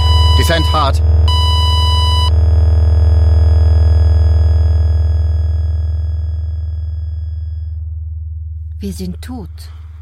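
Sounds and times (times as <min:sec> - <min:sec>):
cockpit warning alarm tone: 0:00.0 - 0:07.8
loud steady low droning hum: 0:00.0 - 0:10.0
speech: 0:00.5 - 0:01.2, 0:08.8 - 0:09.8.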